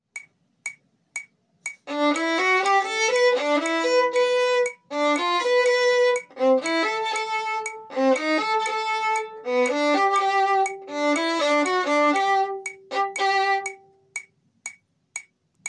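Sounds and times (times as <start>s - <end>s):
metronome clicking: 0.1s - 15.6s
music excerpt in A major: 1.9s - 14.1s.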